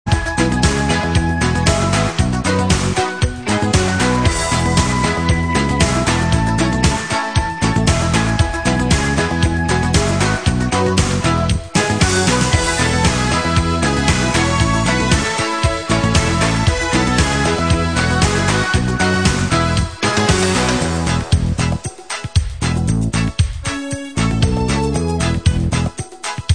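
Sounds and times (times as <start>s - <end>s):
instrumental music: 0.1s - 26.5s.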